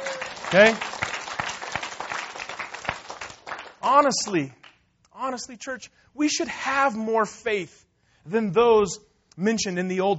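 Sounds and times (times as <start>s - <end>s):
audience clapping: 0.0s - 4.8s
speech: 0.5s - 0.9s, 3.9s - 4.6s, 5.2s - 10.1s.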